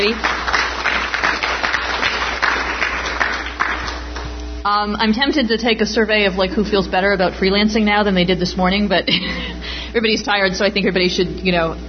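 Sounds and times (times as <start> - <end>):
speech: 0.0 - 0.3, 4.6 - 11.8
audience applause: 0.0 - 4.3.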